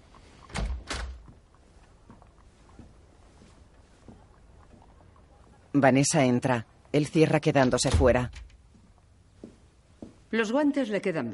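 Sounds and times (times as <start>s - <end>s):
consulting room door opening: 0.5s - 1.3s, 7.7s - 8.6s
speech: 5.8s - 8.4s, 10.3s - 11.3s.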